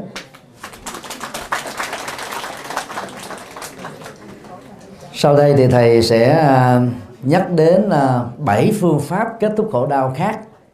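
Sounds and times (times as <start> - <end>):
audience applause: 0.6 - 5.0
speech: 5.2 - 10.5.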